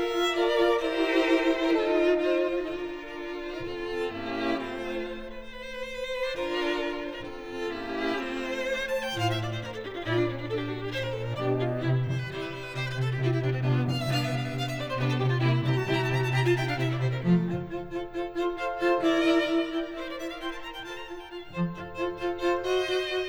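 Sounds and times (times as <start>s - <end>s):
string quartet: 0.0s - 23.2s.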